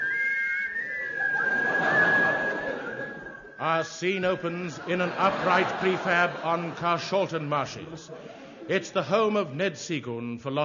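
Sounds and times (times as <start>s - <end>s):
whistled theme tune: 0.0s - 4.6s
laughter: 0.8s - 9.5s
speech: 3.6s - 10.6s.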